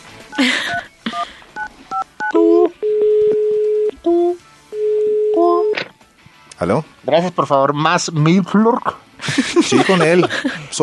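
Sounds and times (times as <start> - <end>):
laughter: 0.4 - 0.9, 9.2 - 10.8
speech: 0.4 - 0.9, 6.6 - 10.8
telephone number being dialed with two-tone beeps: 1.1 - 4.0
telephone ringback tones: 1.6 - 4.0, 4.7 - 5.7.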